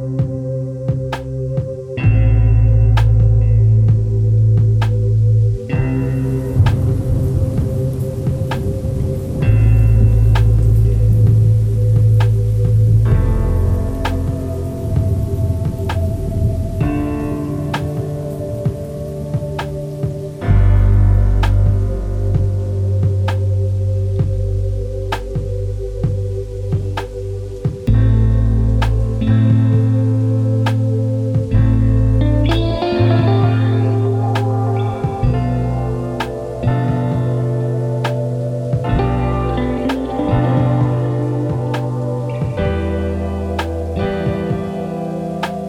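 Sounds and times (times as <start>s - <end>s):
rain: 0.2s - 45.6s.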